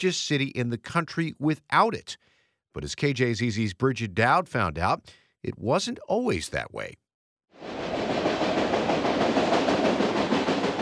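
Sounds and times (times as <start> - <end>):
speech: 0.0 - 7.0
passenger train rail cars rumbling at Phoenix Union Station: 7.6 - 10.8.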